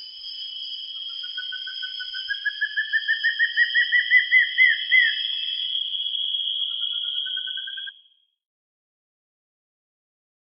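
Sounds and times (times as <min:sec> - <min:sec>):
bird whistling rapid rising notes in Peru: 0:01.0 - 0:08.0.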